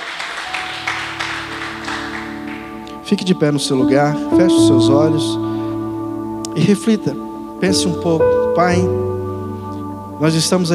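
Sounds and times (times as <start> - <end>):
audience applauding: 0.0 - 3.1
sustained keyboard chords: 0.4 - 10.7
speech: 3.1 - 5.5, 6.6 - 9.1, 10.2 - 10.7.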